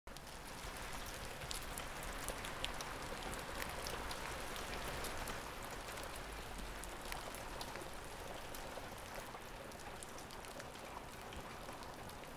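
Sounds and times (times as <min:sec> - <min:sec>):
rain: 0:00.1 - 0:12.3.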